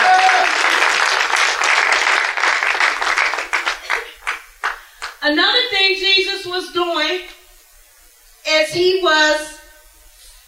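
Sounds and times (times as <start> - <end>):
audience hand clapping: 0.0 - 5.2
speech: 5.3 - 7.4, 8.6 - 9.6.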